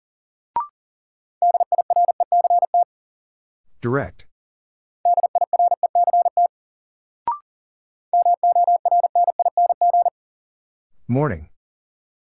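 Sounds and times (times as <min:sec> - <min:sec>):
rapid Morse code beeping tone: 0:01.4 - 0:02.8, 0:05.1 - 0:06.5, 0:08.2 - 0:10.1
speech: 0:03.8 - 0:04.3, 0:11.1 - 0:11.5.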